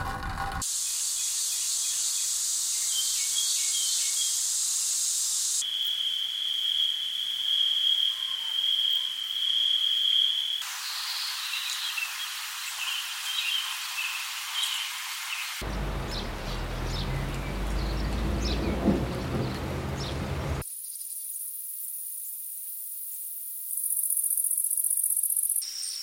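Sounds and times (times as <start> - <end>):
wilderness nature ambience: 0.6 - 26.0.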